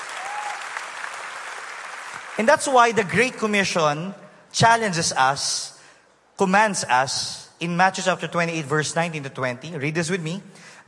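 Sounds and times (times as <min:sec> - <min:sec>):
audience applause: 0:00.0 - 0:02.5
speech: 0:02.4 - 0:05.7, 0:06.4 - 0:10.8.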